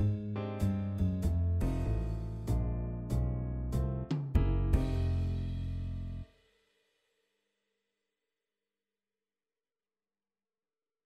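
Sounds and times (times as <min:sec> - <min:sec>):
improv backing track: 0:00.0 - 0:06.2.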